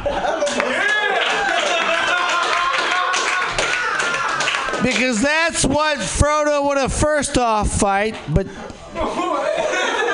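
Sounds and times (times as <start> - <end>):
laughter: 0.0 - 4.8, 9.0 - 10.1
crowd clapping: 0.4 - 5.5
voices cheering and calling out: 0.5 - 5.4
speech: 4.8 - 10.1.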